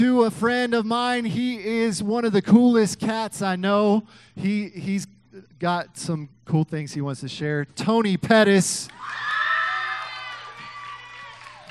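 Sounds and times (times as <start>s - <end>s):
speech: 0.0s - 9.3s
crowd cheering: 8.9s - 11.6s
audience applauding: 9.0s - 11.6s.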